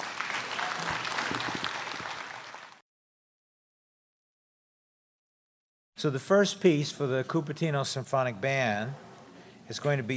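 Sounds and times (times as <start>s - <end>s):
audience applause: 0.0s - 2.8s
speech: 6.0s - 9.0s, 9.7s - 10.1s.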